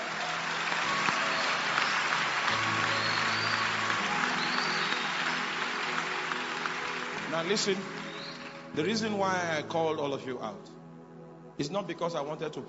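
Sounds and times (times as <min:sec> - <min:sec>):
audience applauding: 0:00.0 - 0:09.1
speech: 0:07.3 - 0:08.0, 0:08.8 - 0:10.8, 0:11.6 - 0:12.6.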